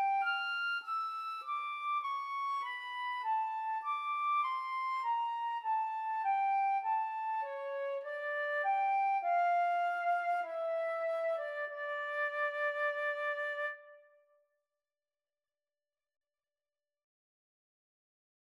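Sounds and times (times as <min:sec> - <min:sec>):
flute duet: 0:00.0 - 0:14.2.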